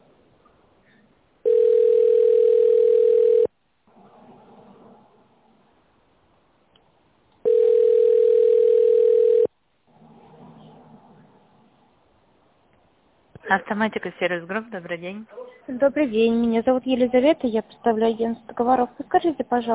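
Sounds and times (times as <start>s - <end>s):
telephone ringback tone: 1.4s - 3.5s, 7.4s - 9.5s
speech: 13.7s - 19.7s.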